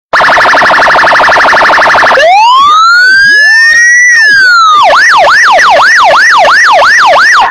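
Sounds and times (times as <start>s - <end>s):
Brazilian police siren: 0.1s - 7.5s.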